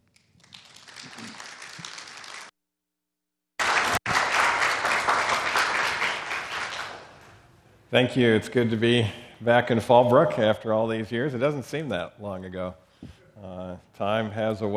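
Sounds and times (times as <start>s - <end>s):
audience applauding to welcome a speaker: 0.5s - 2.5s, 3.6s - 7.1s
speech: 7.9s - 14.7s.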